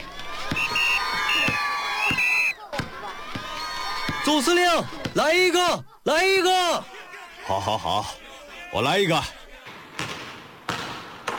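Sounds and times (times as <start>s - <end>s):
crowd applause and cheering: 0.0s - 4.2s
speech: 4.3s - 6.9s, 7.5s - 9.4s
laughter: 6.8s - 9.7s.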